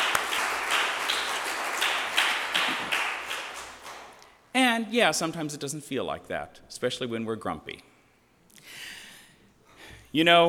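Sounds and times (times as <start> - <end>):
audience applause: 0.0 - 4.2
speech: 4.6 - 7.9, 10.1 - 10.4.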